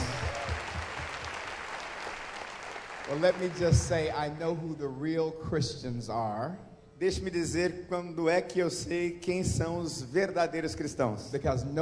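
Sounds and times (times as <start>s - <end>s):
audience applause: 0.0s - 4.2s
speech: 3.1s - 11.8s.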